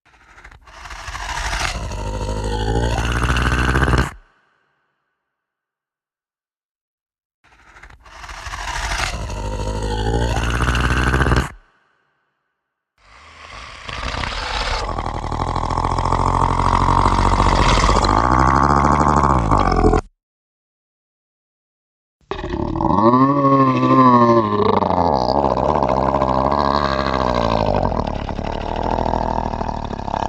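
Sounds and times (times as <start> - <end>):
monster sound effects: 0.1 - 4.2, 7.5 - 11.6, 13.0 - 20.1, 22.3 - 30.2.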